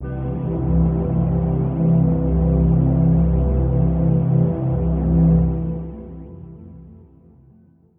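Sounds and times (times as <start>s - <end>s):
calm synths: 0.0s - 7.9s.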